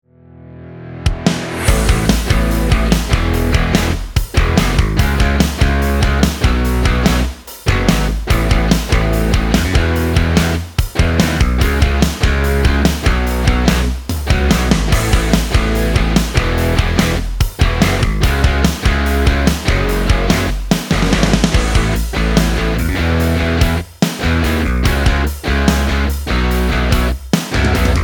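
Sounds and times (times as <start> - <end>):
rock channel intro music: 0.5 - 28.0.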